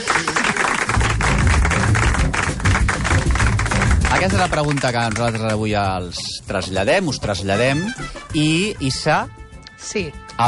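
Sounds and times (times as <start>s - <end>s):
crowd clapping: 0.0s - 6.0s
speech: 4.1s - 10.4s.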